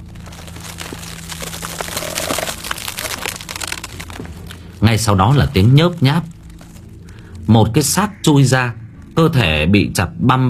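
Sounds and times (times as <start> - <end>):
bones cracking and snapping: 0.0 - 8.2
low steady hum: 0.0 - 10.4
speech: 4.8 - 6.4, 7.5 - 10.4.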